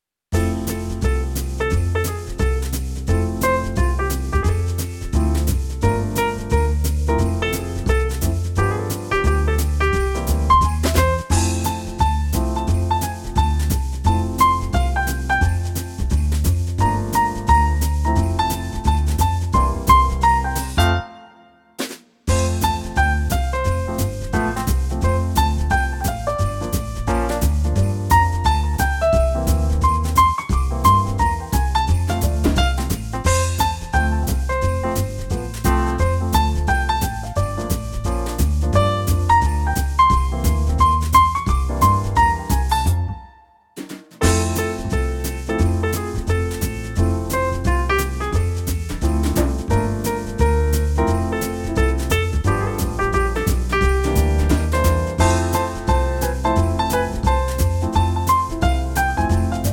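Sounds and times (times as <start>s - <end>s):
Christmas holiday jazz music: 0.3s - 43.6s, 44.2s - 59.7s.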